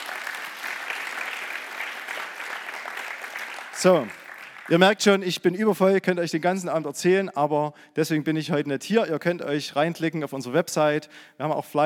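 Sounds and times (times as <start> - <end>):
audience applause: 0.0 - 5.0
speech: 3.8 - 11.8.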